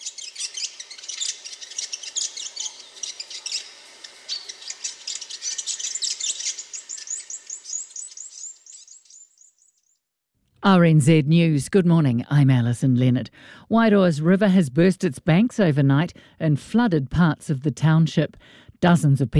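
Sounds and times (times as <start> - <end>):
fantail (pīwakawaka) bird call: 0.0 - 9.3
speech: 10.6 - 19.3.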